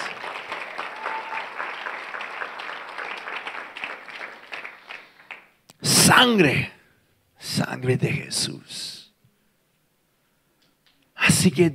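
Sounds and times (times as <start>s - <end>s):
audience applauding: 0.0s - 5.6s
speech: 6.0s - 6.8s, 7.6s - 8.8s, 11.4s - 11.7s.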